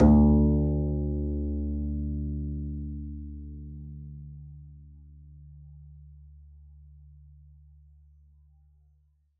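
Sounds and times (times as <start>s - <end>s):
double bass pizzicato on D2: 0.0s - 6.9s.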